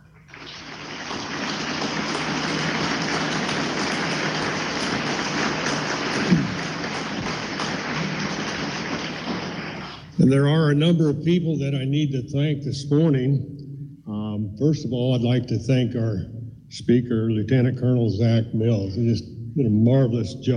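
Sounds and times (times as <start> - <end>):
crowd round of applause: 0.3 - 10.1
speech: 10.3 - 13.5, 14.6 - 20.5.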